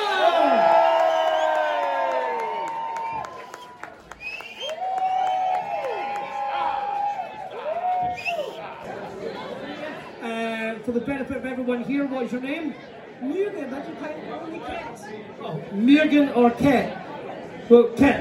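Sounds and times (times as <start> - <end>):
crowd cheering and applauding: 0.0 - 9.1
speech: 10.9 - 17.1, 17.7 - 18.1.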